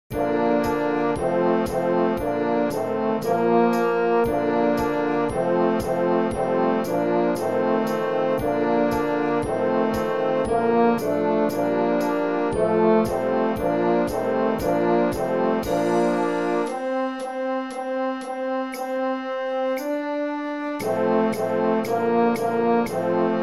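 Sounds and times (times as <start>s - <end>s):
concert duet medley: 0.1s - 23.4s.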